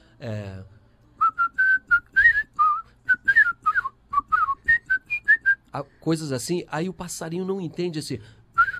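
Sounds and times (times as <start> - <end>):
speech: 0.2 - 0.8, 5.8 - 8.4
person whistling a football anthem melody: 1.2 - 5.7, 8.6 - 8.7.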